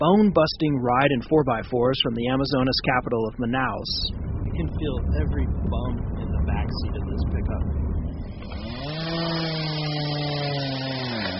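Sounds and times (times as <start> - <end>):
speech: 0.0 - 7.9
chainsaw cutting fallen trees: 8.2 - 11.3.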